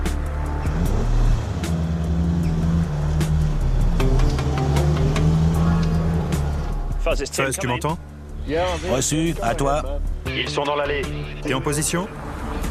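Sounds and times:
car engine as the vehicle drives off: 0:00.4 - 0:07.0
speech: 0:07.1 - 0:12.2.

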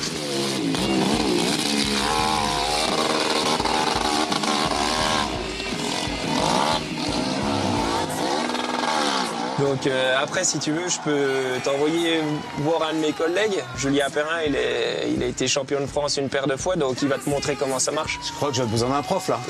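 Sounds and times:
hill-climb motorcycle engine revving: 0:00.0 - 0:12.6
speech: 0:09.8 - 0:19.4.

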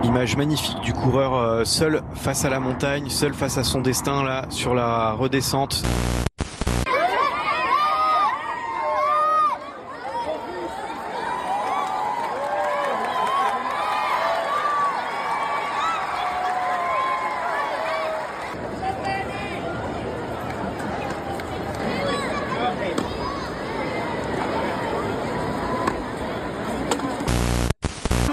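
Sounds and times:
speech: 0:00.1 - 0:06.1
crowd gathered in the streets of Chamonix: 0:06.7 - 0:28.3.

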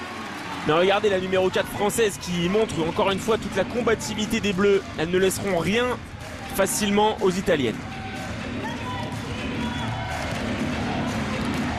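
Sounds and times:
French supporters cheering at a women's France versus Italy match: 0:00.0 - 0:11.7
speech: 0:00.6 - 0:07.9
commentator talking: 0:00.7 - 0:07.8.

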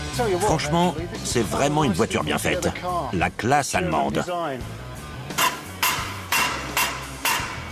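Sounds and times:
speech: 0:00.2 - 0:04.8
rubber mallet striking: 0:05.4 - 0:07.6.

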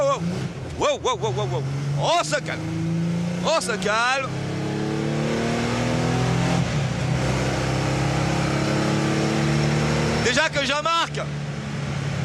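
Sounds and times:
car engine revving while driving: 0:00.0 - 0:12.2
speech: 0:00.8 - 0:04.4, 0:10.2 - 0:11.5.

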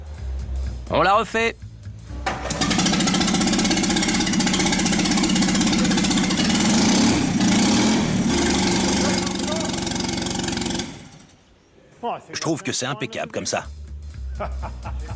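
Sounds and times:
speech: 0:00.9 - 0:01.6, 0:12.1 - 0:13.8, 0:14.4 - 0:15.1
engine block running without exhaust: 0:02.2 - 0:11.3
laughter: 0:14.3 - 0:15.1.

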